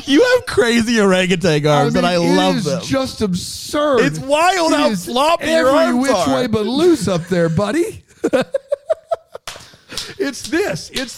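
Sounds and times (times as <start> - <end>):
speech: 0.0 - 8.6, 10.0 - 11.1
people laughing: 5.6 - 10.4
hand clapping over the head: 9.4 - 11.1.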